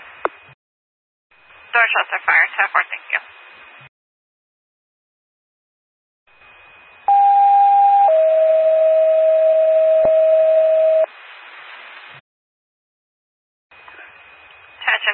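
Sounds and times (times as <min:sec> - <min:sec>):
faint radio hiss: 0:00.0 - 0:00.6, 0:01.4 - 0:03.9, 0:11.0 - 0:12.2, 0:13.8 - 0:15.1
speech: 0:01.8 - 0:03.3
911 paging system electronic alert tones: 0:07.1 - 0:11.1.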